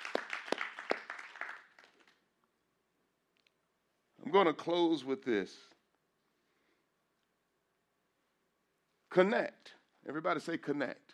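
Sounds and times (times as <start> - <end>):
audience clapping hands: 0.0 - 2.2
speech: 4.3 - 5.7, 9.2 - 11.1.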